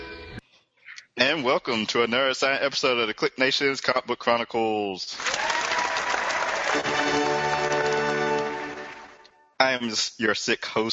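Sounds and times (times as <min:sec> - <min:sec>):
speech: 0:01.2 - 0:05.3, 0:06.8 - 0:07.3, 0:09.6 - 0:10.9
people clapping: 0:05.2 - 0:09.3.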